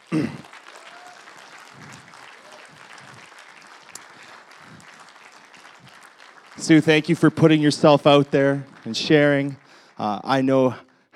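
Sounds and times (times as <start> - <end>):
audience applause: 0.0 - 10.5
speech: 0.1 - 0.5, 6.7 - 11.1.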